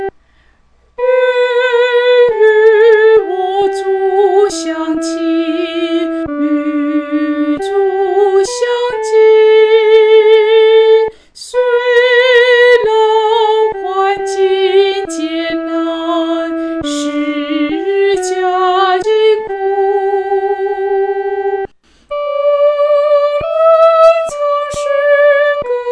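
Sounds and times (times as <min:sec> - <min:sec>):
solo singing: 0:01.0 - 0:25.9.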